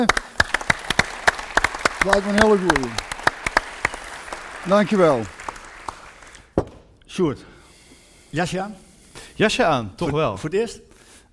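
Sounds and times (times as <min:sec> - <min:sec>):
speech: 0:00.0 - 0:00.2, 0:02.0 - 0:03.1, 0:04.6 - 0:05.4, 0:07.2 - 0:07.5, 0:08.3 - 0:08.8, 0:09.4 - 0:10.9
audience applause: 0:00.0 - 0:06.6.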